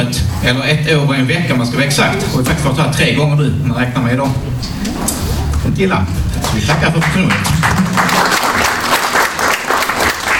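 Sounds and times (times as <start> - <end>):
speech: 0.0 - 8.4
audience applause: 6.2 - 10.3.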